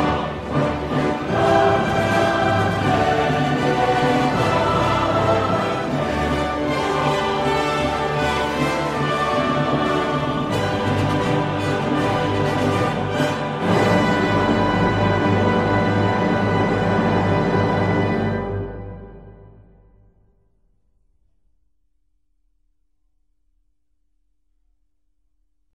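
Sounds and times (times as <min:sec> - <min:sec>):
choral mass: 0:00.0 - 0:20.1.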